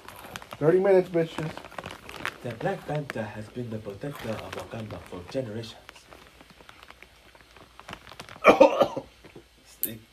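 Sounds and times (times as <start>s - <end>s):
speech: 0.6s - 1.7s, 2.4s - 5.8s
person gagging and coughing after inhaling hot Cheeto dust: 8.4s - 9.2s.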